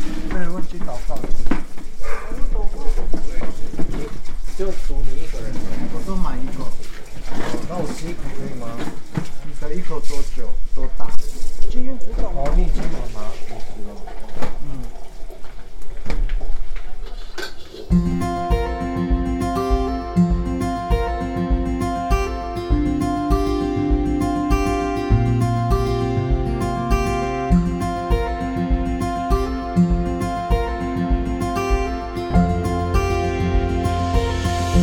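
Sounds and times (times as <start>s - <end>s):
family members chatting over a New Year's Eve reunion dinner: 0.3s - 1.4s, 2.4s - 6.8s, 7.4s - 8.9s, 9.6s - 14.9s
music with sustained tones and a regular beat: 17.9s - 34.8s.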